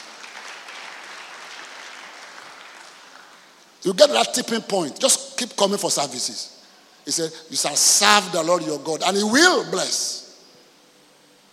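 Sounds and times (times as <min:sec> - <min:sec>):
audience clapping hands: 0:00.0 - 0:03.6
speech: 0:03.8 - 0:10.2.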